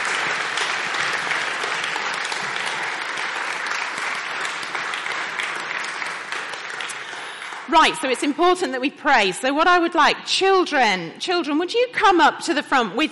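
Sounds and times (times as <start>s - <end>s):
round of applause: 0.0s - 8.3s
speech: 7.7s - 13.1s.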